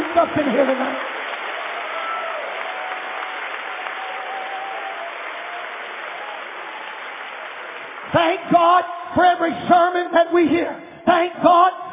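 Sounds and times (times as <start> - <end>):
audience clapping: 0.0 - 8.9
speech: 0.2 - 1.1, 8.1 - 11.8.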